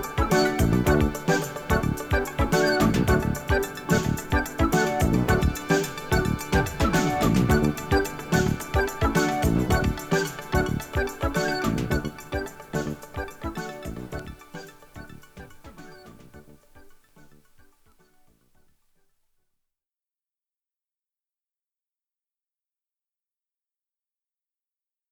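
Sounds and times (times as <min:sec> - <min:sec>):
funk music: 0:00.0 - 0:16.6.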